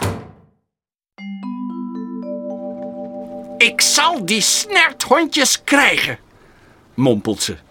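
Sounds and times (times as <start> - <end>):
door slammed shut: 0.0 - 0.6
speech: 3.6 - 6.2, 7.0 - 7.6.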